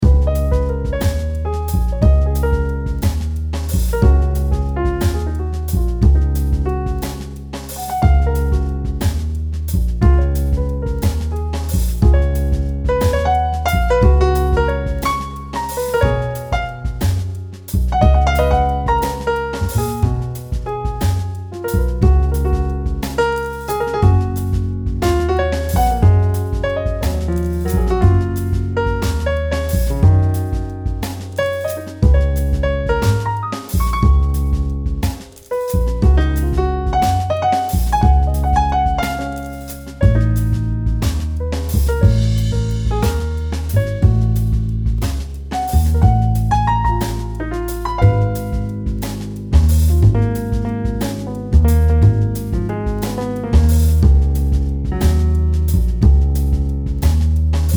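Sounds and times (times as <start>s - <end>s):
jazzy music: 0.0s - 57.7s.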